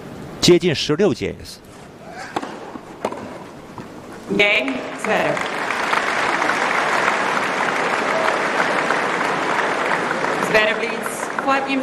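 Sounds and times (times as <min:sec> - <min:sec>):
speech: 0:00.5 - 0:02.4, 0:04.3 - 0:05.6, 0:10.5 - 0:11.8
tennis spectators applauding and cheering: 0:04.4 - 0:11.8.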